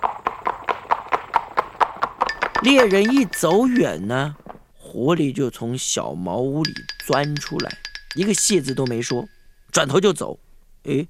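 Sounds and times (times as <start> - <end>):
horse hooves galloping away: 0.0 - 4.7, 6.6 - 9.4
speech: 2.6 - 4.4, 5.0 - 11.0.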